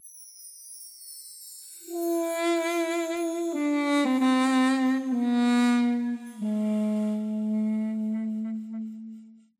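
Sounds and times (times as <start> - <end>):
duduk: 2.0 - 9.5.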